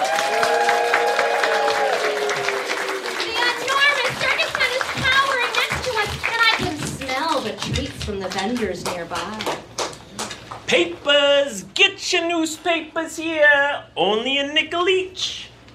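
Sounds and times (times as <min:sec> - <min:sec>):
circus crowd cheering and applauding inside the big tent: 0:00.0 - 0:07.6
speech: 0:08.2 - 0:09.6, 0:10.7 - 0:15.3.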